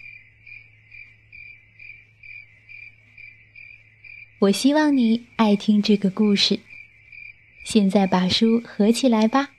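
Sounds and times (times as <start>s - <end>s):
male cricket chirping by rubbing wings: 0.0s - 9.5s
speech: 4.4s - 6.7s, 7.6s - 9.5s.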